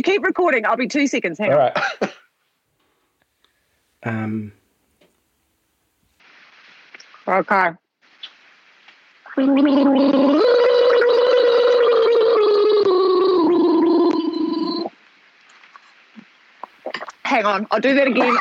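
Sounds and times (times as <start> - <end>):
speech: 0.0 - 2.2, 4.0 - 4.6, 7.3 - 7.8, 9.4 - 10.6, 17.3 - 18.3
person gargling water: 9.3 - 14.9.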